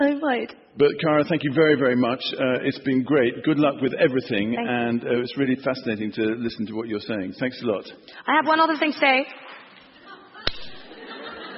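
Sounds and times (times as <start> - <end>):
speech: 0.3 - 9.6
audience clapping: 9.4 - 10.9
laughter: 9.8 - 11.5.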